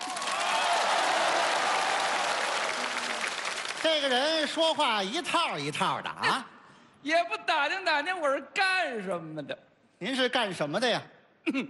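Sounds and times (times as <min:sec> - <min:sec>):
audience applause: 0:00.0 - 0:04.6
speech: 0:03.8 - 0:11.6.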